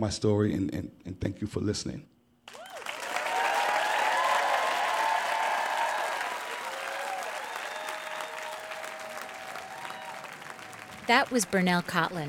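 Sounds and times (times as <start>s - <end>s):
speech: 0.0s - 2.2s, 11.1s - 12.2s
standing ovation applause at a live storytelling event in New Orleans: 2.5s - 12.2s.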